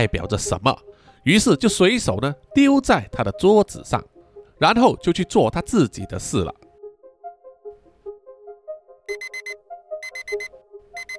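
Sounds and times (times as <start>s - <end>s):
speech: 0.0s - 6.6s, 9.1s - 9.5s, 10.3s - 10.6s
alarm clock ringing: 9.1s - 11.1s.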